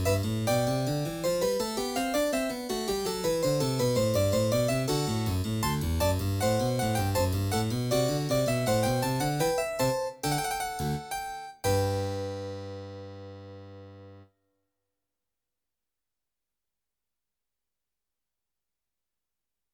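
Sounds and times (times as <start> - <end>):
harpsichord gavotte on Yamaha NP-30: 0.0 - 14.2.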